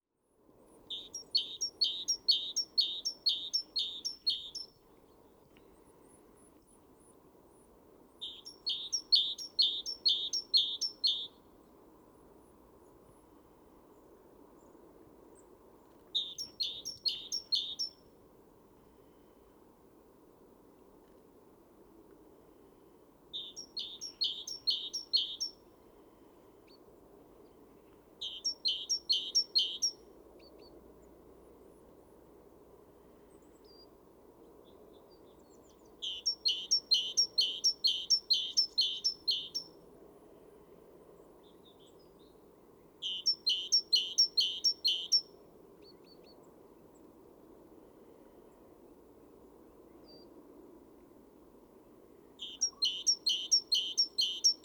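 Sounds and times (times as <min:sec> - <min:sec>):
Parus major calling: 0:00.9 - 0:04.7, 0:08.2 - 0:11.3, 0:16.2 - 0:17.9, 0:23.4 - 0:25.6, 0:28.2 - 0:29.9, 0:36.0 - 0:39.7, 0:43.0 - 0:45.2, 0:52.4 - 0:54.6.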